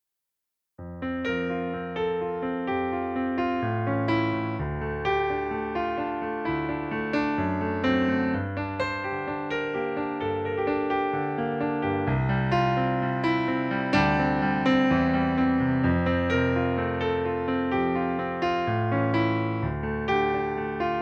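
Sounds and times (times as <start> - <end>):
piano playing in F major: 0.8 - 21.0.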